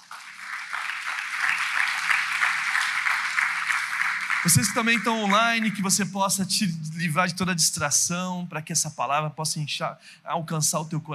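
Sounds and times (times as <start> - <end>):
audience applause: 0.0 - 6.1
speech: 4.4 - 11.1.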